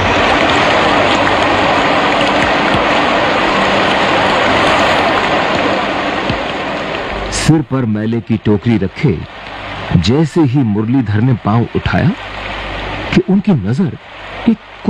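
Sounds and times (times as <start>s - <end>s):
heavy rain: 0.0s - 14.8s
speech: 7.5s - 12.4s, 13.1s - 14.8s.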